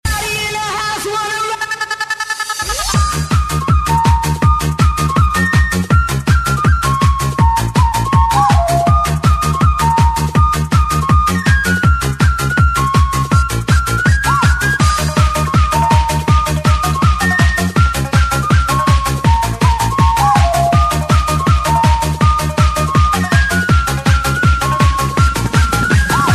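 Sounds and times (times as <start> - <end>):
party house music: 0.1 - 26.3.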